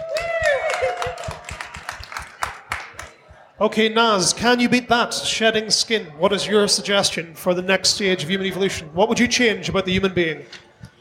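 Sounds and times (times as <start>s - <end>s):
audience applause: 0.0s - 3.2s
speech: 3.6s - 10.7s.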